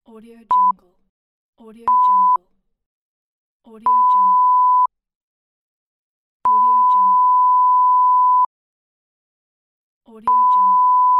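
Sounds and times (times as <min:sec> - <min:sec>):
censor beep: 0:00.5 - 0:00.8, 0:01.9 - 0:02.4, 0:03.9 - 0:04.9, 0:06.5 - 0:08.5, 0:10.3 - 0:11.1.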